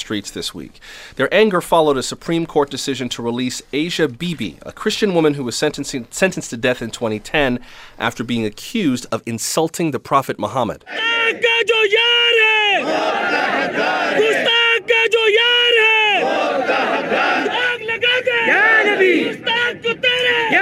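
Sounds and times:
speech: 0.0s - 17.6s
protest crowd chanting slogans in Urdu: 10.9s - 11.8s, 12.4s - 20.5s.

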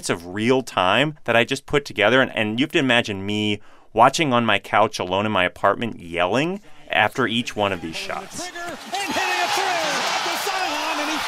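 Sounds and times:
speech: 0.0s - 9.6s
basketball crowd cheering: 7.6s - 11.2s.

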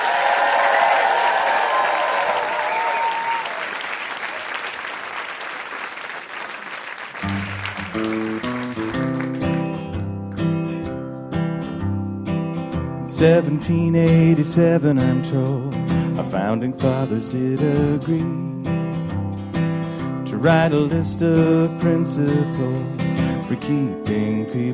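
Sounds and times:
audience applause: 0.0s - 10.0s
music with a steady pulse: 7.2s - 24.7s
speech: 13.2s - 18.7s, 20.4s - 24.7s.

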